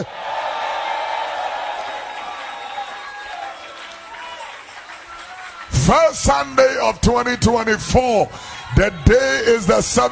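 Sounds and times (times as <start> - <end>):
speech: 0.0 - 0.2, 5.9 - 10.1
audience clapping: 0.0 - 7.6.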